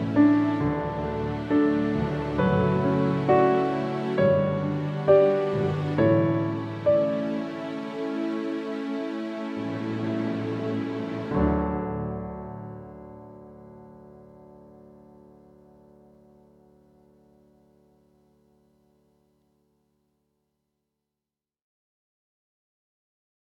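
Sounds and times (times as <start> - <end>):
lullaby music: 0.0 - 16.7.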